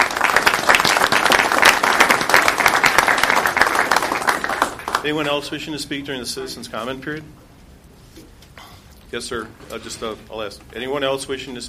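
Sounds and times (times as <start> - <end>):
round of applause from meeting audience: 0.0 - 5.1
speech: 5.0 - 7.4, 9.1 - 11.6.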